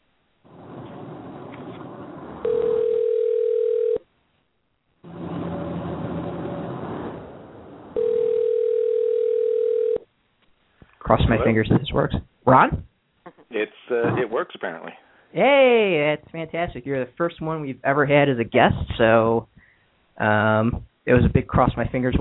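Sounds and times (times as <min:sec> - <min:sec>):
telephone dial tone: 0:02.4 - 0:04.0, 0:08.0 - 0:10.0
speech: 0:11.2 - 0:12.9, 0:13.6 - 0:19.5, 0:20.2 - 0:22.1.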